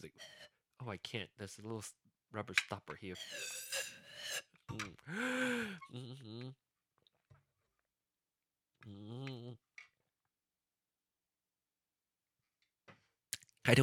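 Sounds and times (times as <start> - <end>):
speech: 0.0 - 4.0, 4.7 - 6.6, 8.8 - 9.6, 13.6 - 13.8
voiced gasps and breathy exhales: 3.1 - 6.0
person drinking water: 3.2 - 6.6.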